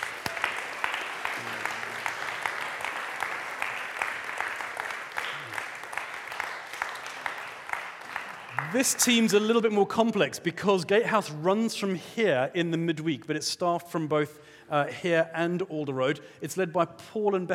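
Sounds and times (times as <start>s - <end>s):
crowd applauding: 0.0s - 9.6s
faint vocal whoops: 1.3s - 2.0s, 8.5s - 8.8s
speech: 8.7s - 17.5s.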